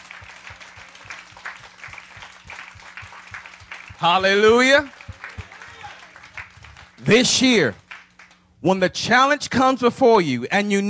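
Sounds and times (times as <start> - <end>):
audience applause: 0.0 - 8.4
speech: 4.0 - 5.0, 7.1 - 7.8, 8.6 - 10.8.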